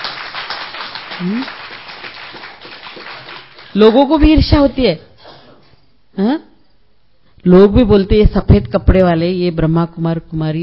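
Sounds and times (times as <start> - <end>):
audience clapping: 0.0 - 4.4
speech: 1.2 - 1.6, 3.7 - 5.1, 6.2 - 6.5, 7.4 - 10.6.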